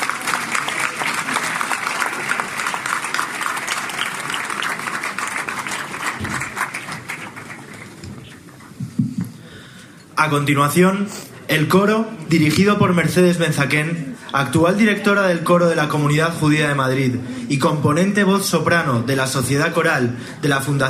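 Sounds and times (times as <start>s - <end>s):
large audience applause: 0.0s - 8.6s
speech: 10.2s - 20.8s.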